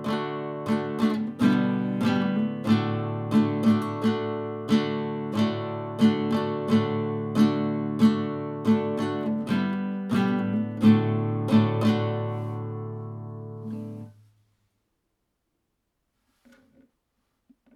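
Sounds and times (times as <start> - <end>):
guitar accompaniment: 0.0 - 14.2.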